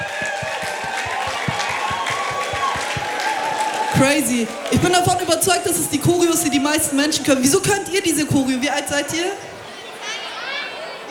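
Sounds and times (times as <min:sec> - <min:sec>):
quick regular thumping pulse: 0:00.0 - 0:03.4
crowd applauding and cheering: 0:00.0 - 0:06.7
speech: 0:04.0 - 0:09.5.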